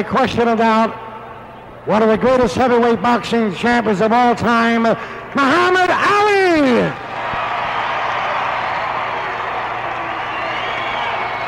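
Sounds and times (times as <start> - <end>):
speech: 0.0 - 1.0, 1.8 - 7.0
crowd roaring: 7.0 - 11.4.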